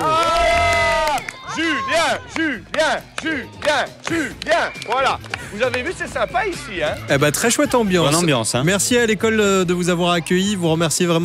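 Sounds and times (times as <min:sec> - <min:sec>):
applause for the children: 0:00.0 - 0:01.5, 0:02.3 - 0:05.9
speech: 0:02.1 - 0:11.2.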